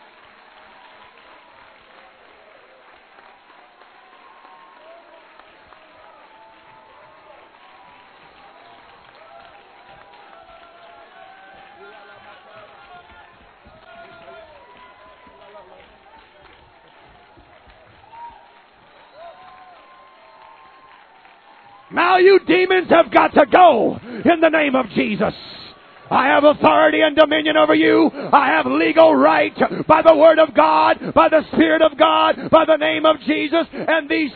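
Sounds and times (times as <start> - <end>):
audience clapping hands: 0.0 - 34.3
speech: 21.9 - 25.4, 26.1 - 34.3.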